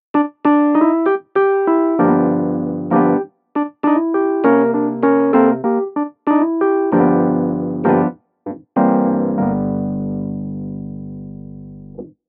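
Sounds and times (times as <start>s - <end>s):
electric pianos: 0.1s - 12.2s.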